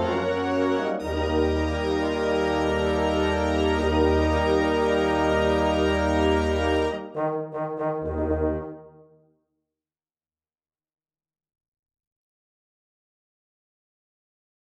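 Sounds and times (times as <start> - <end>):
fanfare: 0.0 - 9.2.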